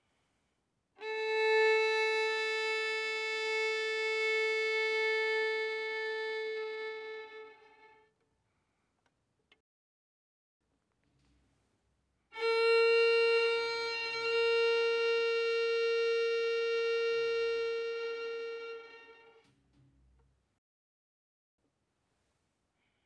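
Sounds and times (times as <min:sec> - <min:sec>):
violin bowed fortissimo on the D string: 0:01.0 - 0:08.1, 0:12.4 - 0:19.5.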